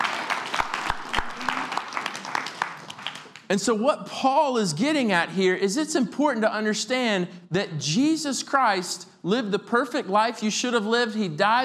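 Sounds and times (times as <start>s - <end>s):
audience clapping: 0.0s - 3.5s
speech: 3.5s - 11.6s.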